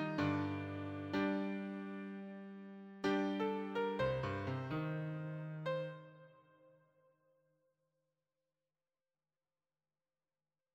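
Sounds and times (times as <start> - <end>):
solo piano: 0.0 - 6.7.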